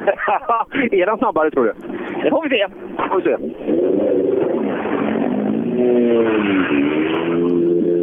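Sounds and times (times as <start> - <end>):
laughter: 0.0 - 1.0
speech: 0.0 - 4.3, 5.8 - 7.5
rally car driving past with engine roaring: 3.0 - 8.0.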